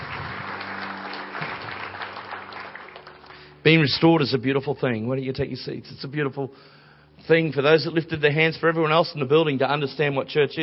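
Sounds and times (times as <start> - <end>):
audience applause: 0.0 - 3.8
speech: 3.6 - 10.6.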